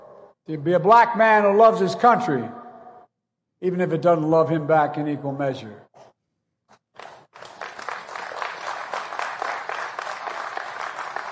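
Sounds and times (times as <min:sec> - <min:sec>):
speech: 0:00.5 - 0:02.6, 0:03.6 - 0:05.8
crowd applause at commencement: 0:07.0 - 0:11.3.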